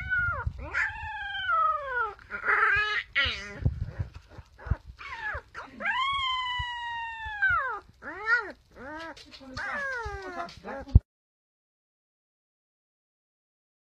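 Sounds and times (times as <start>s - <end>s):
puppy yelping and whimpering: 0.0s - 11.0s.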